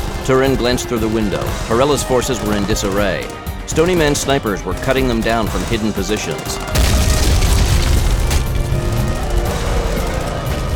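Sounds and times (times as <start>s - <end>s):
speech: 0.2s - 6.8s
Chevy Blazer four-wheel drive roaring: 6.6s - 10.7s
explosion blowing open an estate entrance: 6.7s - 9.0s.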